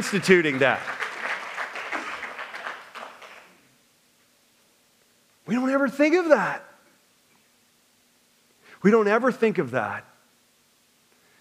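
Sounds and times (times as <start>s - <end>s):
speech: 0.0s - 1.0s, 5.5s - 6.7s, 8.8s - 10.1s
audience clapping: 0.0s - 3.6s.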